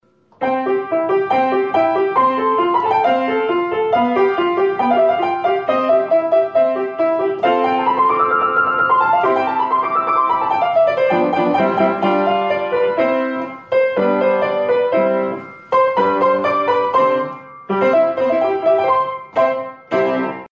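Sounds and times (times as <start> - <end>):
piano improvisation: 0.3 - 20.5.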